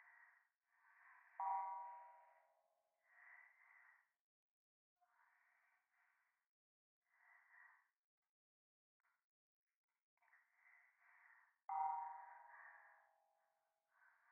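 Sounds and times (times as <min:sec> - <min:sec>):
breathing in the right ear: 0:00.0 - 0:04.2, 0:05.0 - 0:08.0, 0:10.2 - 0:14.2.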